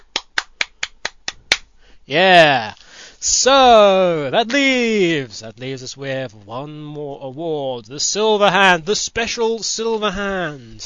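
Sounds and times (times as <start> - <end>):
applause: 0.0 - 1.6
speech: 2.1 - 10.8.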